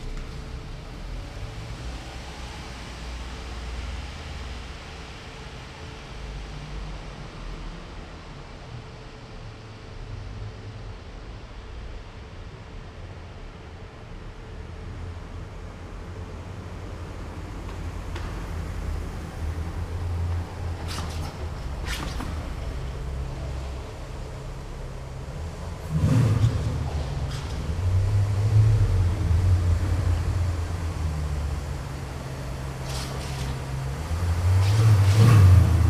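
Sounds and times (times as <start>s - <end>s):
cars driving over speed bumps in an underground car park: 17.1s - 35.8s.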